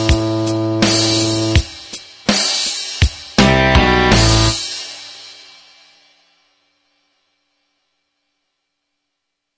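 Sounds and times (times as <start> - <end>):
backing music: 0.0 - 5.2.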